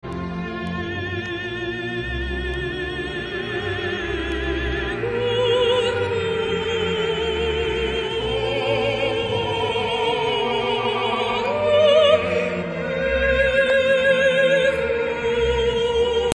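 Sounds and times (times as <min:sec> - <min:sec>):
choir singing a requiem: 0:00.1 - 0:16.3.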